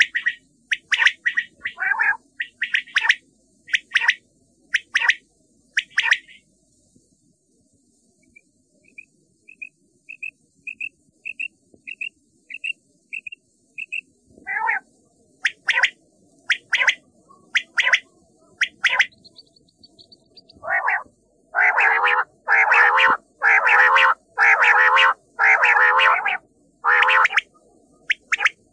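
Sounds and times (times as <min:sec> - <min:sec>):
common quail calling: 0:00.0 - 0:04.2, 0:05.8 - 0:06.4, 0:14.5 - 0:14.8, 0:15.5 - 0:19.2, 0:20.4 - 0:27.5.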